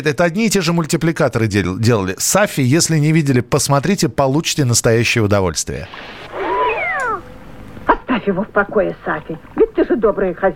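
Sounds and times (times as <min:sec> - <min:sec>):
speech: 0:00.0 - 0:06.4, 0:08.2 - 0:10.5
cat meowing: 0:06.3 - 0:07.3.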